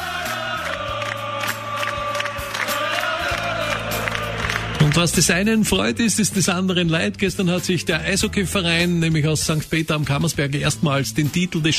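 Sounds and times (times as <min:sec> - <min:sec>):
crowd cheering: 0:00.0 - 0:05.8
speech: 0:05.0 - 0:11.7.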